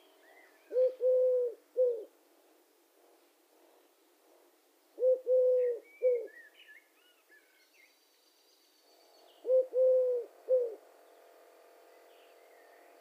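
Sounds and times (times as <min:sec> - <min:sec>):
Eurasian Collared Dove Streptopelia decaocto: 0:00.7 - 0:02.1, 0:05.0 - 0:06.4, 0:09.4 - 0:10.8.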